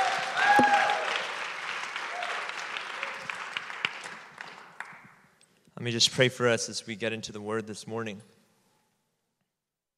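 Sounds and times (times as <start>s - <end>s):
crowd applauding to welcome a speaker to a church service: 0.0s - 5.2s
speech: 5.8s - 8.4s.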